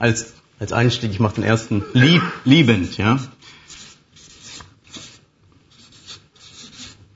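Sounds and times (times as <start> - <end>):
speech: 0.0 - 3.4
laughter: 1.4 - 2.9
adjectives being written on a board: 2.8 - 7.1.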